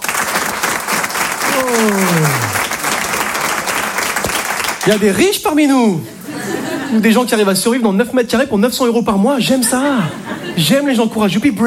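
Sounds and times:
audience applause: 0.0 - 5.2
speech: 4.9 - 6.2, 6.9 - 11.6
laughter: 5.9 - 7.6, 9.4 - 11.0.

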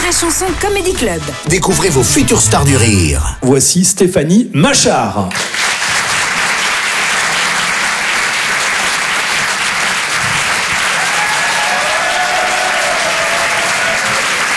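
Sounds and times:
speech: 0.1 - 5.7
audience applause: 5.3 - 14.5.

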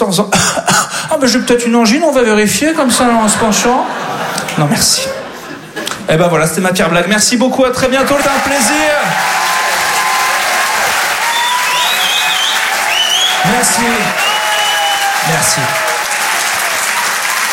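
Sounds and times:
speech: 0.0 - 5.3, 6.1 - 9.6, 13.4 - 14.2, 15.2 - 15.8
laughter: 2.7 - 6.1
audience applause: 7.9 - 17.5.

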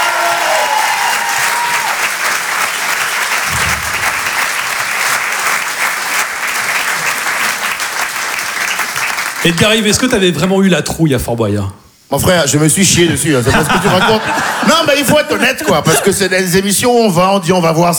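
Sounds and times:
theatre audience applause: 0.0 - 10.4
speech: 9.5 - 17.9
laughter: 13.2 - 16.4.

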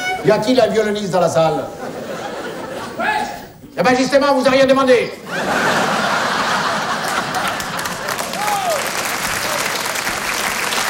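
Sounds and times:
speech: 0.2 - 2.0, 3.8 - 5.8
laughter: 1.7 - 3.4, 5.2 - 9.9
audience applause: 5.4 - 10.8.

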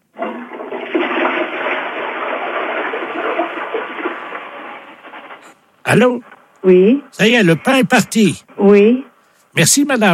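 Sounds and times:
toilet being flushed: 0.0 - 5.4
speech: 5.9 - 10.1.

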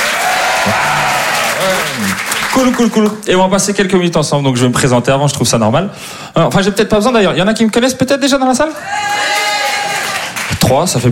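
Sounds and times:
audience applause: 0.0 - 3.2, 9.0 - 10.7
speech: 1.6 - 9.5, 10.7 - 11.1.

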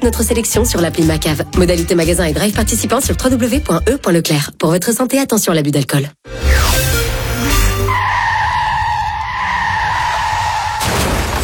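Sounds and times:
speech: 0.0 - 6.8
car crash: 6.4 - 11.4
tires screeching: 6.4 - 11.4.

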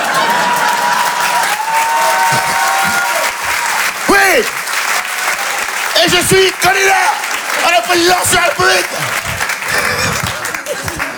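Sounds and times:
laughter: 0.0 - 4.6, 6.0 - 11.1
audience applause: 0.0 - 11.1
speech: 6.2 - 9.2.

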